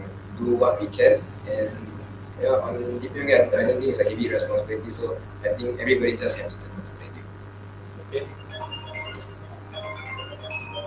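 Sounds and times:
speech: 0.4 - 6.7, 8.1 - 8.4
mobile phone ringing: 8.2 - 10.8.

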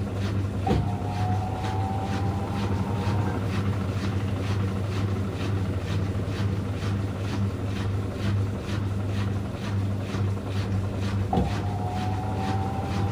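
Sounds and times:
washing machine running: 0.0 - 13.1
washing machine rising whine: 0.6 - 5.2, 11.4 - 13.1.

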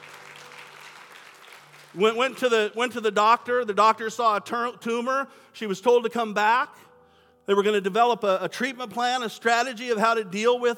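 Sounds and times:
audience clapping: 0.0 - 2.8
speech: 1.9 - 6.9, 7.5 - 10.7.

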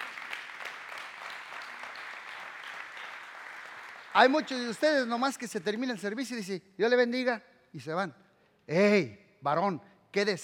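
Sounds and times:
audience applauding: 0.0 - 5.3
speech: 4.2 - 10.4.

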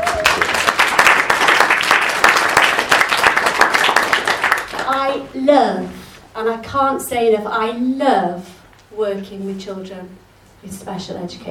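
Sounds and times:
audience applause: 0.0 - 5.0
speech: 5.2 - 11.5.

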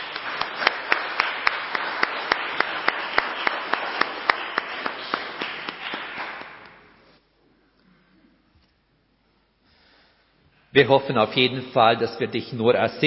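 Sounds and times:
applause: 0.0 - 7.0
speech: 10.8 - 13.0.

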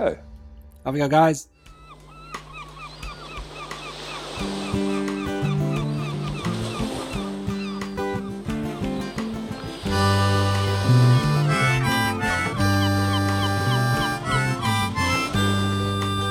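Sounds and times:
speech: 0.0 - 1.5
seagulls calling: 1.5 - 16.2
band with plodding bass line and chords: 8.5 - 16.2.

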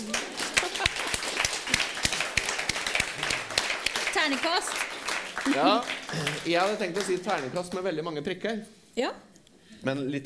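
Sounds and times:
hands clapping of a small group: 0.0 - 7.9
speech: 4.2 - 10.2.

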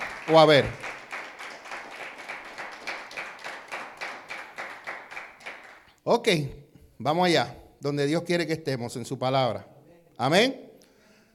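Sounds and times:
audience applauding: 0.0 - 6.0
speech: 0.3 - 0.8, 6.1 - 10.7.

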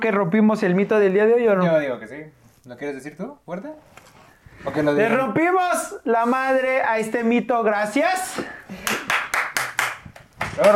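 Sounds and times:
speech: 0.0 - 4.0, 4.6 - 9.0, 10.6 - 10.7
hand clapping: 8.7 - 10.7.

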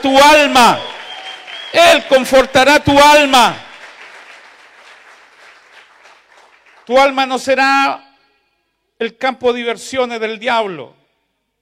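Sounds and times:
speech: 0.0 - 0.9, 1.7 - 3.6, 6.9 - 8.0, 9.0 - 11.0
crowd applauding: 0.4 - 2.5, 3.1 - 7.0.

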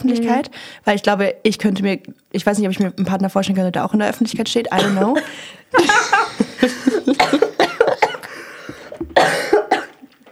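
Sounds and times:
speech: 0.0 - 7.4
person coughing after choking on something: 4.8 - 10.1
laughter: 5.1 - 8.6
throat clearing: 7.2 - 10.0.

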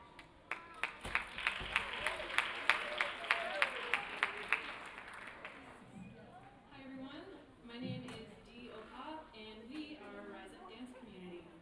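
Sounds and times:
audience applause at a culture and music festival welcoming a dance instructor: 0.5 - 5.8.

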